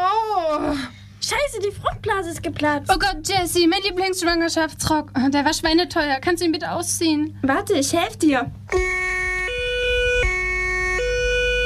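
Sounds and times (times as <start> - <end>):
speech: 0.6 - 8.9
ambulance siren: 8.7 - 11.6.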